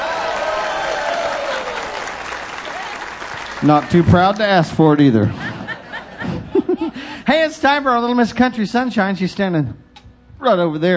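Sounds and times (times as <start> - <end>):
audience applause: 0.0 - 5.2
speech: 3.6 - 5.4, 6.9 - 9.8, 10.4 - 10.9
laughter: 5.0 - 7.2.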